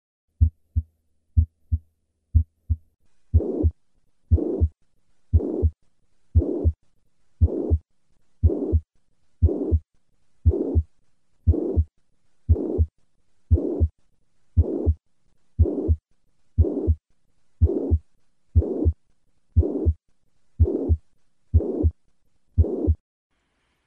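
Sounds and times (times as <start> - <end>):
mitral regurgitation heart murmur through a stethoscope: 2.4 - 5.8, 6.4 - 6.8, 7.4 - 7.8, 8.4 - 9.8, 10.4 - 10.9, 11.5 - 11.9, 12.5 - 12.9, 13.5 - 13.9, 14.6 - 15.0, 15.6 - 16.0, 16.6 - 17.0, 17.6 - 18.0, 18.6 - 19.0, 19.6 - 20.0, 20.6 - 22.0, 22.6 - 23.0.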